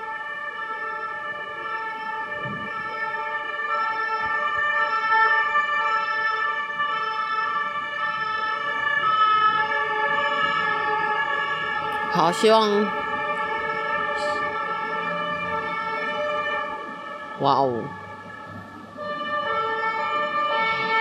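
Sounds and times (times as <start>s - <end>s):
ambulance sirens passing: 0.0s - 20.9s
speech: 12.2s - 13.0s, 17.4s - 18.0s.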